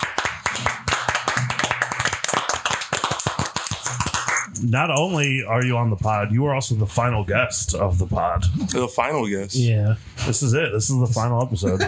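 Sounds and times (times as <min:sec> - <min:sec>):
hand clapping: 0:00.0 - 0:05.4
speech: 0:04.6 - 0:11.8.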